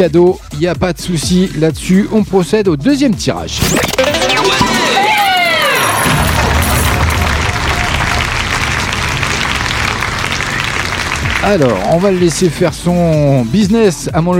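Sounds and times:
speech: 0.0s - 4.0s, 11.4s - 14.3s
radio jingle: 3.5s - 7.4s
applause: 6.3s - 12.8s.

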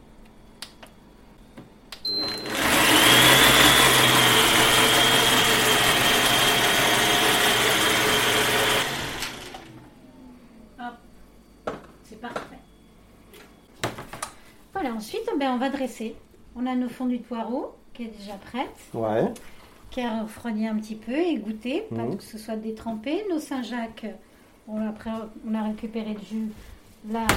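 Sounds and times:
kitchen blender running at speed 6: 2.2s - 9.9s
speech: 15.6s - 27.3s.

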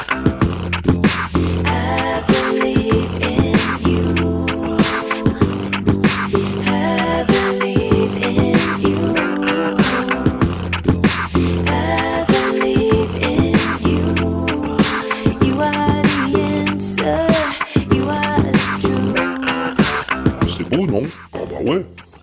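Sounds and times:
looped, filtered beatbox recording: 0.0s - 22.2s.

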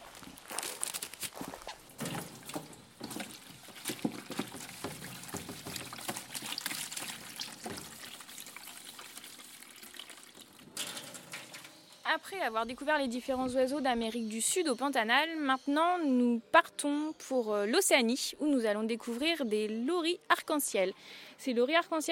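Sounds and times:
water running while washing dishes: 1.9s - 12.0s
speech: 12.2s - 22.1s.

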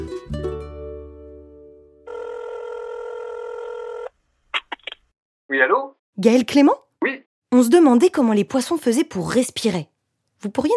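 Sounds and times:
steady buzzing phone ring tone: 2.1s - 4.1s
speech: 5.6s - 10.7s.

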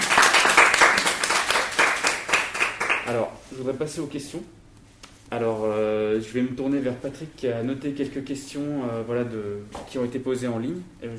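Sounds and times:
audience applause: 0.0s - 3.1s
speech: 3.1s - 4.6s, 5.3s - 11.1s.

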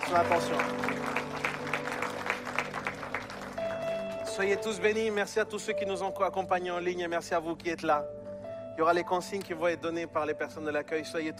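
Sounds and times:
audience applause: 0.0s - 4.5s
speech: 0.1s - 1.1s, 4.4s - 8.2s, 8.8s - 11.3s.

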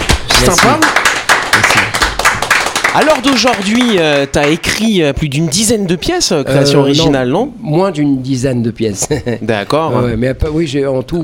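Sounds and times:
audience clapping: 0.0s - 5.7s
speech: 0.4s - 1.8s, 2.9s - 11.2s
laughter: 8.9s - 9.7s.

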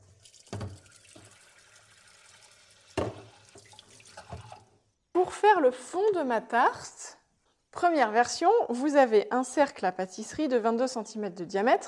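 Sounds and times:
water running from a tap: 0.0s - 4.7s
speech: 5.2s - 7.0s, 7.8s - 11.8s.

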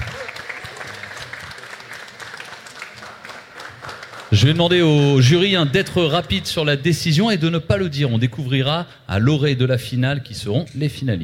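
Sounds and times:
audience applauding at a pitch competition: 0.0s - 5.4s
speech: 4.3s - 11.2s.

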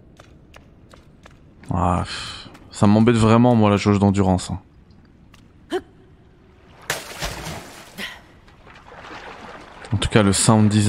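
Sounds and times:
speech: 1.7s - 4.7s, 10.2s - 10.8s
video game water splash from diving: 6.6s - 10.8s.

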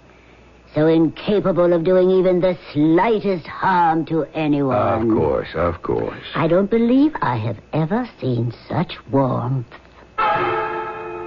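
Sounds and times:
speech: 0.7s - 9.8s
chiming bells: 10.2s - 11.2s.

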